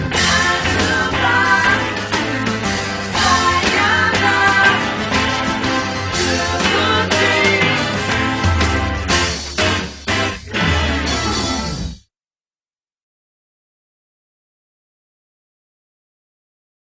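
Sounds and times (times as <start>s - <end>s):
instrumental music: 0.0s - 12.0s.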